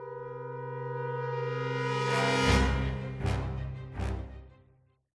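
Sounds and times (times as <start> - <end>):
music sting: 0.1 - 4.7.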